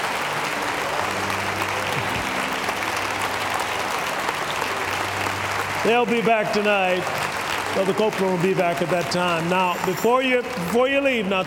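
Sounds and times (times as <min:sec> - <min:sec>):
audience applause and hand clapping: 0:00.0 - 0:11.4
speech: 0:05.8 - 0:11.4.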